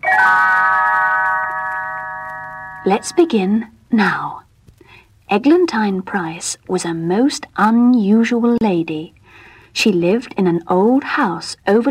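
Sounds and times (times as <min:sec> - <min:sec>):
little bells chiming as a page-turn signal: 0:00.0 - 0:03.2
speech: 0:02.8 - 0:04.4, 0:05.3 - 0:09.2, 0:09.8 - 0:11.8.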